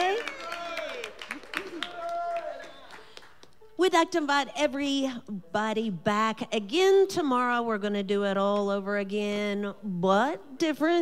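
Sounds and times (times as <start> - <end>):
audience applause: 0.0 - 3.4
speech: 3.9 - 11.0.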